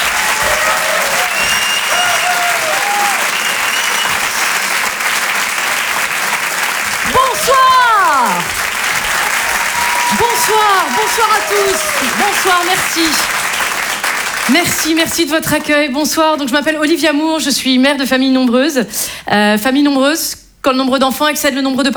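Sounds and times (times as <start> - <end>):
audience at a French stand-up comedy show whooping and shouting: 0.0 - 6.0, 6.8 - 13.4
audience at a French stand-up comedy show clapping: 0.0 - 15.9
speech: 10.6 - 13.3, 14.5 - 21.9.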